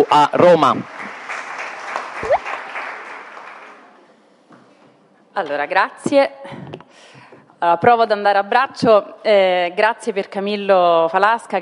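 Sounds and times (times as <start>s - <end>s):
speech: 0.0s - 0.9s, 5.4s - 11.6s
audience applause: 0.8s - 3.9s.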